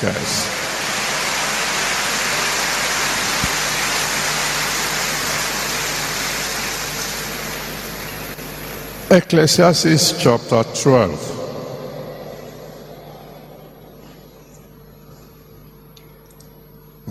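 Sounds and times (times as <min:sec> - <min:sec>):
speech: 0:00.0 - 0:00.5, 0:09.1 - 0:11.3
audience applause for speakers: 0:00.0 - 0:09.0, 0:11.3 - 0:14.5.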